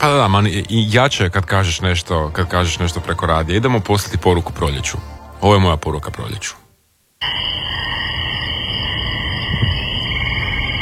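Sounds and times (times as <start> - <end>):
speech: 0.0 - 6.6
crickets trilling at night: 7.2 - 10.8
distant frogs in a nighttime chorus: 7.2 - 10.8.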